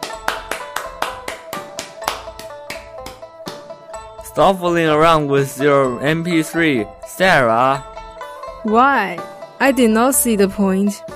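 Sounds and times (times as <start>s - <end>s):
hands clapping: 0.0s - 4.4s
speech: 4.4s - 7.9s, 8.6s - 11.1s.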